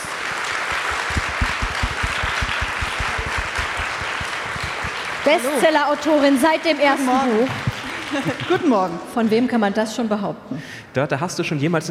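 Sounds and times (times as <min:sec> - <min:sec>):
audience applause: 0:00.0 - 0:08.7
speech: 0:05.2 - 0:11.8
laughter: 0:07.6 - 0:08.9.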